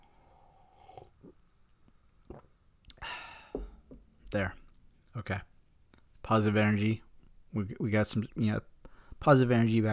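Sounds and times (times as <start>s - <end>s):
person sipping bourbon: 0.0s - 1.5s, 2.2s - 3.8s
speech: 4.3s - 4.6s, 5.2s - 5.5s, 6.3s - 9.9s.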